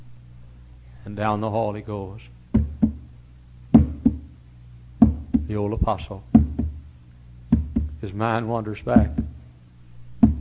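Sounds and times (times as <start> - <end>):
speech: 1.0 - 2.4, 5.5 - 6.3, 8.0 - 9.2
dull clangs on a door: 2.6 - 3.0, 3.8 - 4.3, 5.0 - 5.5, 7.5 - 8.0, 10.2 - 10.4.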